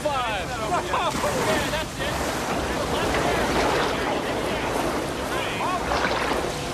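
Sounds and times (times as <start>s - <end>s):
faint voices: 0.5s - 6.7s
rushing whitewater of fast-flowing Class 4–5 rapids roaring during rafting: 0.6s - 6.7s
wind buffeting: 1.4s - 6.7s.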